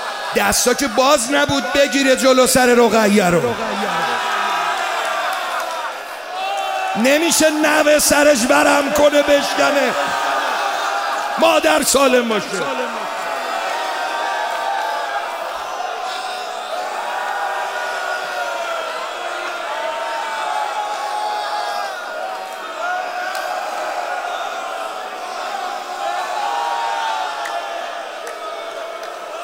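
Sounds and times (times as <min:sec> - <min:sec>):
large crowd shouting and wailing: 0:00.0 - 0:29.4
speech: 0:00.3 - 0:04.3, 0:06.9 - 0:10.2, 0:11.4 - 0:13.1
laughter: 0:00.7 - 0:06.2.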